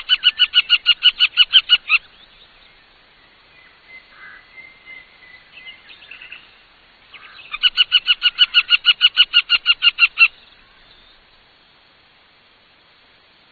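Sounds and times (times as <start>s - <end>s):
Montagu's harrier calling: 0.0s - 2.2s, 7.1s - 11.2s.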